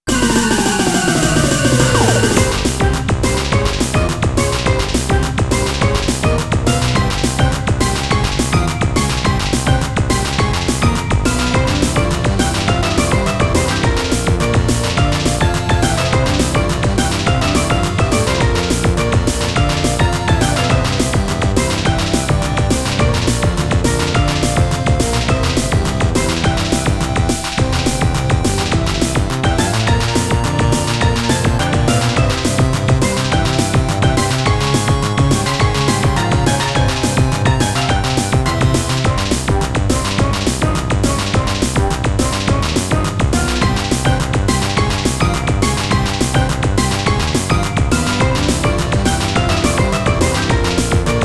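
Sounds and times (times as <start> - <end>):
wild battle techno music: 0.0 - 51.2.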